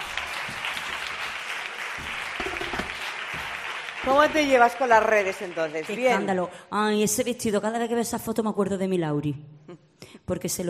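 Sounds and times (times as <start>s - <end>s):
audience applause: 0.0s - 6.3s
speech: 4.0s - 9.5s, 10.3s - 10.6s.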